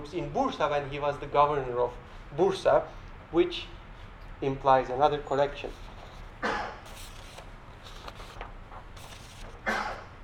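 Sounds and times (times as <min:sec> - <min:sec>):
speech: 0:00.0 - 0:03.8, 0:04.4 - 0:06.8
person sneezing: 0:06.4 - 0:06.8, 0:09.6 - 0:10.1.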